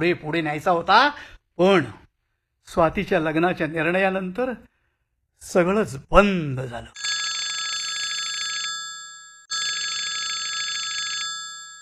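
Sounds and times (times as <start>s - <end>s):
speech: 0.0s - 2.0s, 2.7s - 4.7s, 5.4s - 7.0s
telephone ringing: 7.0s - 11.7s.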